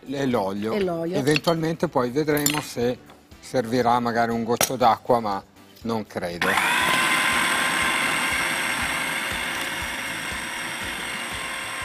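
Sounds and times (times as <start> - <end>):
speech: 0.1 - 6.8
kitchen blender running: 6.4 - 11.8.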